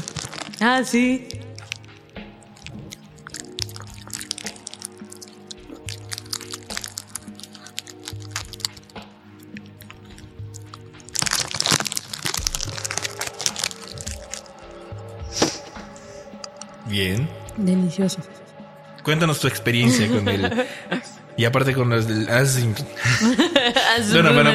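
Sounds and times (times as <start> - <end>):
person crunching and chewing mazapán peanut candy: 0.0 - 14.8, 16.4 - 16.8
speech: 0.6 - 1.4, 17.0 - 18.4, 19.1 - 24.5
laughter: 19.7 - 21.2, 22.9 - 24.5.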